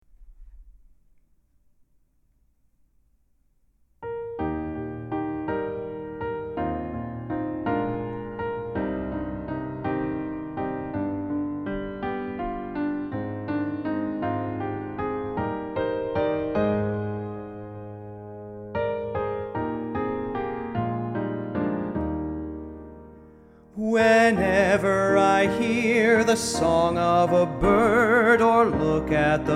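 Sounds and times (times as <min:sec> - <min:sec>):
piano: 0:00.0 - 0:29.5
person singing: 0:23.8 - 0:29.5.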